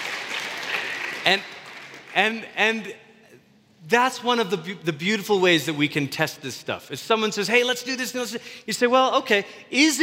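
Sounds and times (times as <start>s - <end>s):
audience applause: 0.0s - 2.2s
speech: 1.2s - 3.0s, 3.8s - 10.0s.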